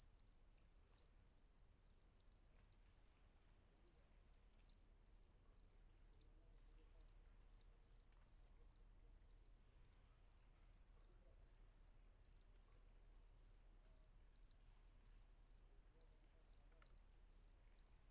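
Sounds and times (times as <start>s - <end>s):
crickets chirping at night at Vagia, Patmos, Greece: 0.2s - 18.0s.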